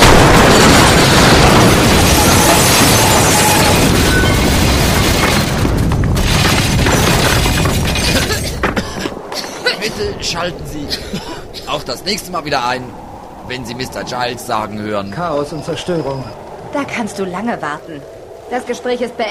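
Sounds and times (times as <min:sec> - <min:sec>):
radio set exploding: 0:00.0 - 0:08.4
debris crashing and shattering: 0:00.0 - 0:09.2
speech: 0:10.4 - 0:19.3.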